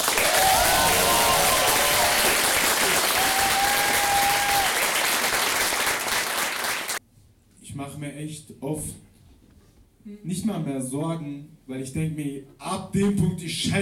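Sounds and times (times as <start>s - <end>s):
audience applause: 0.0s - 7.0s
speech: 8.2s - 9.1s, 10.0s - 13.8s.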